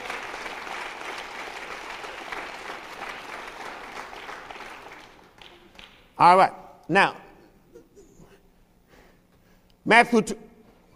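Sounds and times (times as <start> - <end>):
audience clapping: 0.0 - 6.2
speech: 6.2 - 7.2, 9.9 - 10.4.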